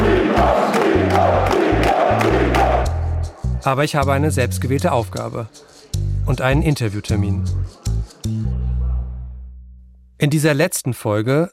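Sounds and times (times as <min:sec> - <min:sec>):
spectators shouting and cheering: 0:00.0 - 0:03.6
deep pulsing bass: 0:00.0 - 0:05.0, 0:06.0 - 0:10.1
speech: 0:03.6 - 0:05.7, 0:06.3 - 0:08.5, 0:10.2 - 0:11.5.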